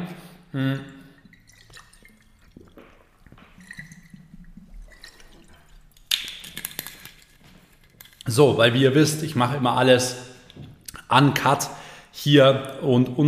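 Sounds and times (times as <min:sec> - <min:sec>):
speech: 0:00.5 - 0:01.0, 0:08.3 - 0:10.3, 0:11.1 - 0:13.2
swallowing: 0:00.6 - 0:06.0
person sipping water: 0:00.7 - 0:08.3.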